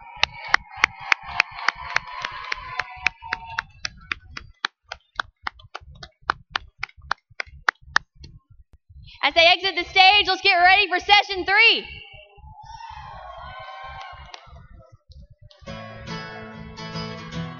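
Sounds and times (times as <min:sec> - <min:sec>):
audience applause: 0:00.0 - 0:05.1, 0:13.8 - 0:14.6
speech: 0:09.3 - 0:12.0.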